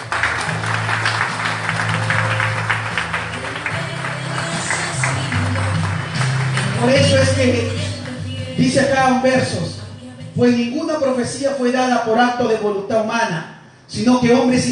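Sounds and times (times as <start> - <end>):
loud applause: 0.0 - 8.2
speech: 6.8 - 7.8, 8.6 - 9.8, 10.4 - 14.6.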